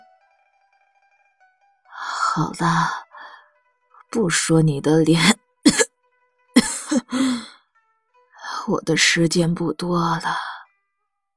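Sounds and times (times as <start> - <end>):
speech: 2.4 - 3.0, 4.1 - 5.4, 8.7 - 10.5
sick woman lying in bed coughing: 5.2 - 5.9, 6.6 - 7.5.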